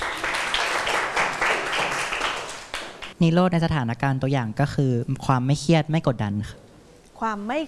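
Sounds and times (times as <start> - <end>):
students clapping for a classmate: 0.0 - 3.2
speech: 3.2 - 6.6, 7.2 - 7.6.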